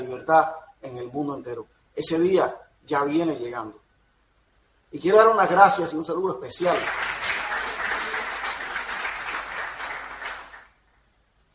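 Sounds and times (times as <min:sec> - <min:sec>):
speech: 0:00.2 - 0:03.8, 0:04.9 - 0:07.2
audience applause: 0:06.7 - 0:10.8.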